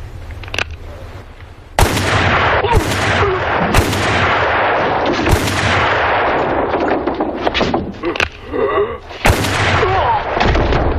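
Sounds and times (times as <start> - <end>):
gunshots in a film scene: 1.8 - 8.0, 9.2 - 10.9.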